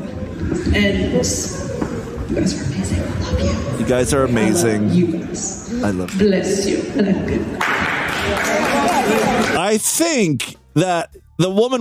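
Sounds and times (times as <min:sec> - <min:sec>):
speech: 0:00.7 - 0:11.7
audience clapping: 0:07.6 - 0:09.8.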